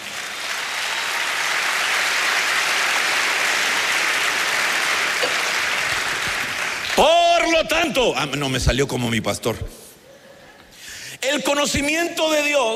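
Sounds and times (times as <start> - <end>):
crowd of people clapping their hands: 0.0 - 7.5
speech: 7.0 - 9.8, 11.5 - 12.7.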